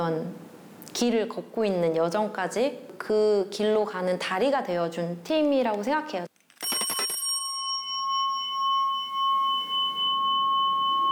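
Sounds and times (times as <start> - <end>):
speech: 0.0 - 0.4, 1.0 - 6.3
Jeju shamanic ritual instrument, loud and resonant: 7.3 - 11.1.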